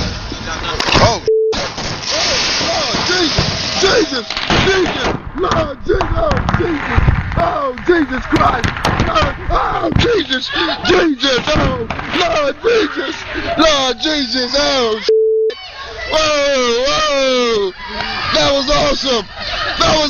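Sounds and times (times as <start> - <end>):
crackling firework pops: 0.8 - 10.2
whistling firework rockets in an inner city: 1.6 - 5.0
people shouting: 2.1 - 20.0
laughter: 3.8 - 15.1, 15.8 - 20.0
speech: 4.2 - 15.2, 16.1 - 20.0.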